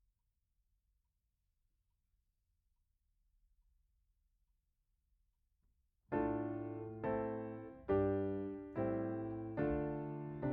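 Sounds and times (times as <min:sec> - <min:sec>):
piano note A: 0:06.1 - 0:10.5.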